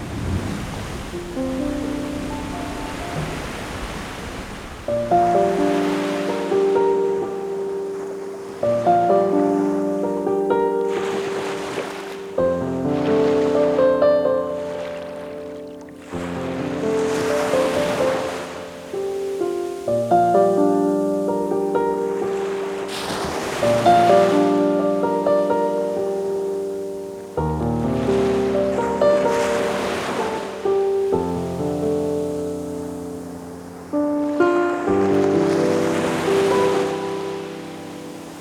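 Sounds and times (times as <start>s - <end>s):
ocean nature sounds: 0.0s - 38.3s.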